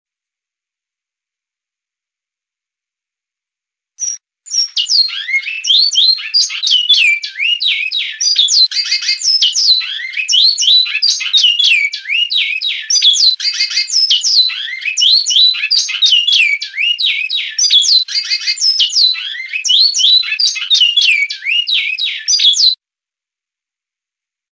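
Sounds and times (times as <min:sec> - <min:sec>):
bicudo singing: 0:04.0 - 0:22.8.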